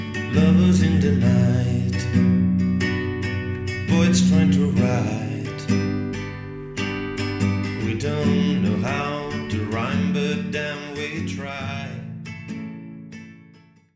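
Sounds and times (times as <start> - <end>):
non-native English male singing a commercial: 0.1 - 12.3.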